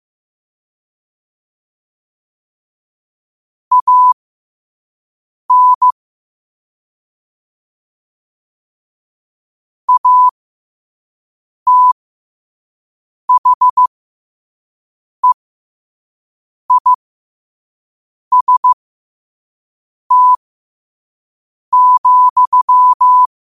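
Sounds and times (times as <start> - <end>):
morse code at 5 wpm: 3.7 - 4.2, 5.5 - 5.9, 9.9 - 10.3, 11.7 - 12.0, 13.3 - 13.9, 16.7 - 17.0, 18.3 - 18.8, 20.1 - 20.4, 21.7 - 23.3.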